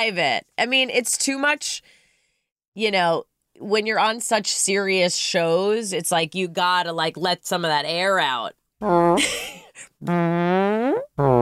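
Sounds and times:
speech: 0:00.0 - 0:02.0, 0:02.8 - 0:11.4
mouth imitation of farting sounds: 0:08.8 - 0:09.2, 0:10.0 - 0:11.4.

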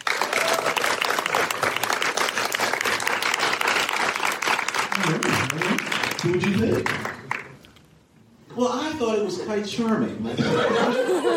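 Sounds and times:
audience applause: 0:00.0 - 0:07.7
laughter: 0:04.9 - 0:06.0, 0:09.1 - 0:11.3
speech: 0:06.2 - 0:07.2, 0:09.0 - 0:11.3.

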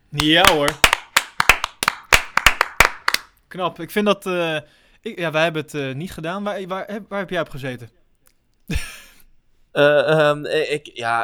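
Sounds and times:
speech: 0:00.1 - 0:00.8, 0:03.5 - 0:08.0, 0:08.7 - 0:08.9, 0:09.8 - 0:11.2
clapping applause: 0:00.2 - 0:03.3.

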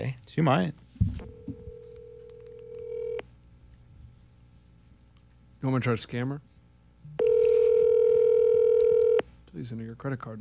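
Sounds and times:
speech: 0:00.0 - 0:00.8, 0:05.6 - 0:06.5, 0:09.6 - 0:10.3
cell phone ringing tone: 0:01.2 - 0:03.2, 0:07.2 - 0:09.2.

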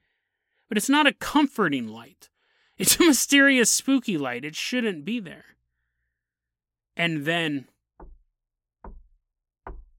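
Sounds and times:
speech: 0:00.7 - 0:05.6, 0:07.0 - 0:07.7
knocking at a door: 0:08.0 - 0:09.9.

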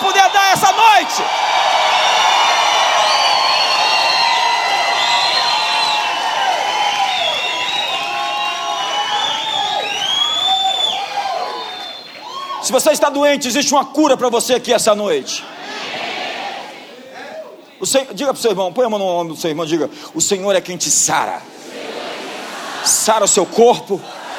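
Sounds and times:
large crowd shouting and cheering: 0:00.0 - 0:13.2, 0:15.0 - 0:17.7, 0:21.5 - 0:24.3
speech: 0:12.7 - 0:15.6, 0:17.8 - 0:22.0, 0:22.8 - 0:24.2.

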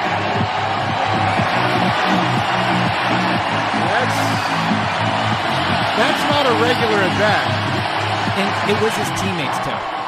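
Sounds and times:
large stadium crowd cheering: 0:00.0 - 0:10.0
people shouting: 0:00.0 - 0:10.0
speech: 0:06.6 - 0:07.6, 0:08.3 - 0:10.0.

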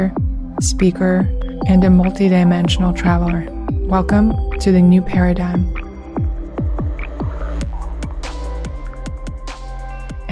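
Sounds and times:
speech: 0:00.0 - 0:05.8
frogs croaking outside after rain: 0:02.8 - 0:08.2.

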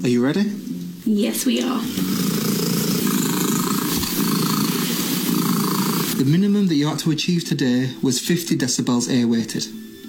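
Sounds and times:
speech: 0:00.0 - 0:02.3, 0:06.2 - 0:10.0
domestic cat purring loudly: 0:01.8 - 0:06.3.

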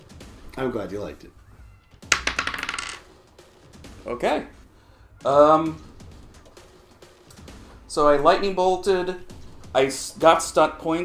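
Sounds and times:
speech: 0:00.6 - 0:01.4, 0:04.0 - 0:04.6, 0:05.2 - 0:05.9, 0:07.9 - 0:11.0
die clattering across a hard tabletop: 0:02.0 - 0:03.1.

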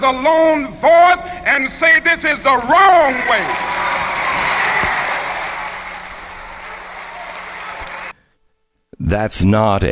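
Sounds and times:
speech: 0:00.0 - 0:03.7, 0:09.0 - 0:09.9
large crowd cheering and applauding: 0:03.0 - 0:08.2.

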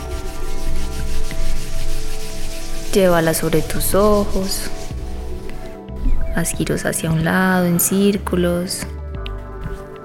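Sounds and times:
palms rubbing briskly together: 0:00.0 - 0:06.8
speech: 0:02.9 - 0:04.8, 0:06.4 - 0:08.9.

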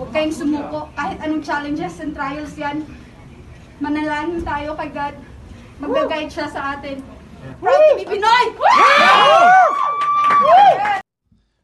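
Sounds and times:
speech: 0:00.2 - 0:03.0, 0:03.8 - 0:09.8
crowd cheering and whooping: 0:07.6 - 0:11.0.

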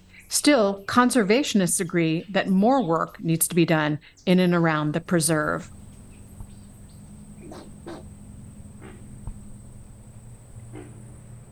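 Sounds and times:
frogs croaking in a wetland: 0:00.0 - 0:11.5
speech: 0:00.3 - 0:05.8
alligators bellowing: 0:05.0 - 0:11.5
thin steady insect whine: 0:05.3 - 0:11.5.

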